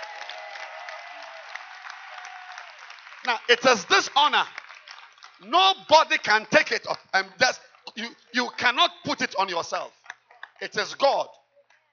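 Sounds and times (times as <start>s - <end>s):
audience clapping hands: 0.0s - 8.0s
speech: 3.2s - 4.6s, 5.4s - 10.0s, 10.6s - 11.4s.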